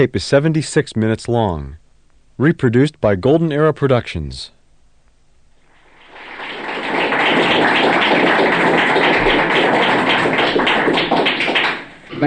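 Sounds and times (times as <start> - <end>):
speech: 0.0 - 1.8, 2.4 - 4.6
applause: 5.8 - 12.2.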